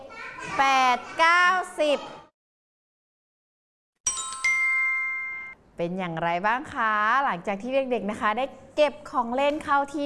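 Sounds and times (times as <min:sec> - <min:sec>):
speech: 0:00.6 - 0:02.2, 0:05.8 - 0:10.0
teacher's ping chime signal: 0:04.0 - 0:05.6.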